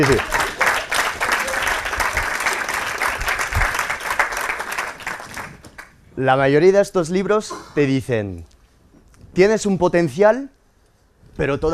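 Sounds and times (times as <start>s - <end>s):
speech: 0.0s - 0.4s, 6.2s - 8.5s, 9.4s - 10.6s, 11.4s - 11.7s
crowd applauding: 0.0s - 5.9s.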